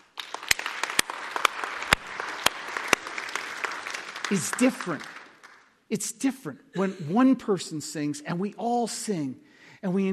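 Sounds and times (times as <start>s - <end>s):
audience clapping together: 0.0s - 5.8s
speech: 4.3s - 5.1s, 5.9s - 10.1s.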